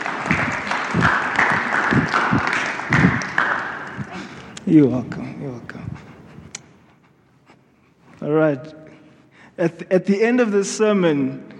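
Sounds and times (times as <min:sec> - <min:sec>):
audience applause: 0:00.0 - 0:04.6
speech: 0:04.7 - 0:05.2, 0:08.3 - 0:08.8, 0:09.6 - 0:11.5.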